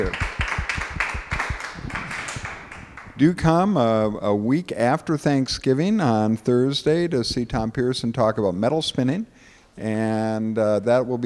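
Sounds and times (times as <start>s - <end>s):
speech: 0.0s - 0.2s, 3.2s - 11.2s
audience sparse applause for a speaker: 0.0s - 3.5s.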